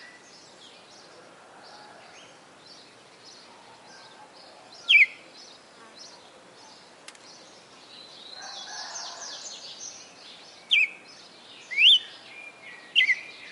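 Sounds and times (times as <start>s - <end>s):
female red-cowled cardinal singing in Fortaleza-CE: 4.9s - 5.2s, 10.7s - 11.0s, 11.7s - 12.1s, 13.0s - 13.4s.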